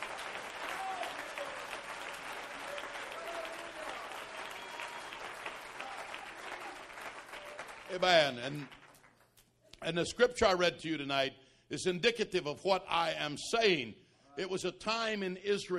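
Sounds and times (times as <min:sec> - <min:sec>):
audience clapping hands in praise: 0:00.0 - 0:09.9
speech: 0:07.9 - 0:08.8, 0:09.8 - 0:15.7.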